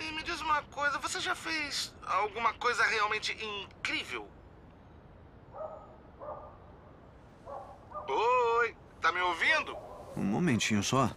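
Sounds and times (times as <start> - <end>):
steady hiss: 0.0 - 11.1
speech: 0.5 - 4.4, 7.5 - 11.1
dog barking: 5.5 - 6.6, 7.4 - 8.2, 9.7 - 10.3.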